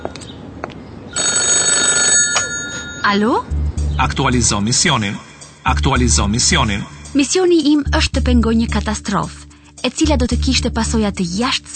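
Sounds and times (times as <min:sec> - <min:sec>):
telephone ringing with an electronic bell tone: 0:01.2 - 0:03.4
speech: 0:03.0 - 0:11.7.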